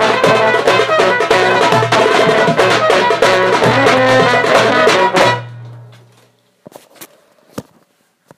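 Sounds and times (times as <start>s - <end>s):
band rehearsing medley of nine-eight breaks: 0.0s - 6.4s.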